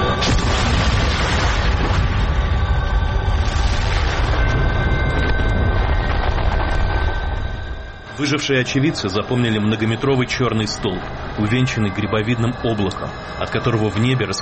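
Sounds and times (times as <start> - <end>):
explosion boom: 0.2 - 7.0
speech: 8.2 - 14.4.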